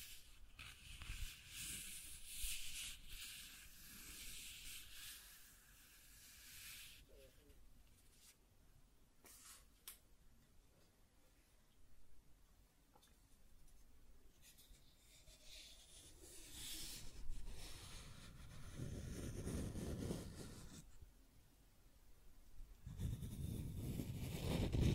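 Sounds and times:
scratching and tracing on a surface: 0.0s - 7.1s, 14.4s - 21.0s, 22.8s - 24.9s.

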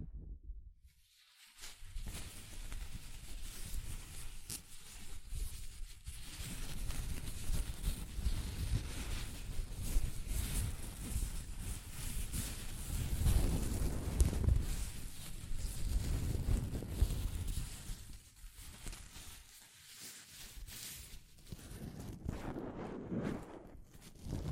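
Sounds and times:
soft fabric brushing against a microphone: 0.9s - 24.5s.

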